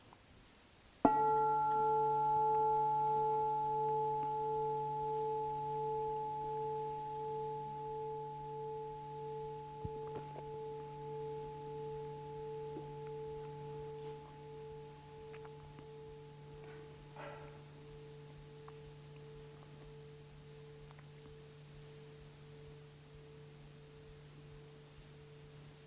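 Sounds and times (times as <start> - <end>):
gong struck and ringing: 1.1 - 17.9.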